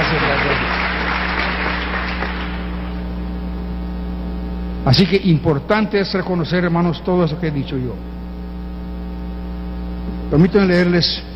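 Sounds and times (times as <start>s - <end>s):
audience applause: 0.0s - 3.0s
low electrical hum: 0.0s - 11.3s
speech: 4.9s - 8.2s, 10.3s - 11.3s.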